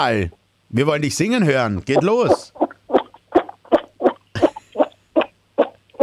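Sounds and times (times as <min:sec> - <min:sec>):
speech: 0:00.0 - 0:02.6
child imitating toad croaks: 0:02.5 - 0:06.0.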